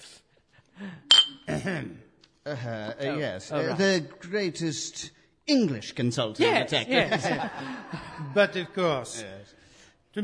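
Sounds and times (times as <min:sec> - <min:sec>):
glasses clinking in a toast: 0:01.1 - 0:01.5
speech: 0:01.6 - 0:10.2
laughter: 0:06.7 - 0:08.8.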